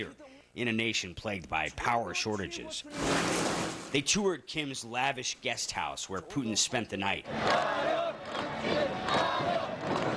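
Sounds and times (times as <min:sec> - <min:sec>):
speech: 0:00.0 - 0:09.0
huge crowd chanting in unison: 0:07.3 - 0:10.1.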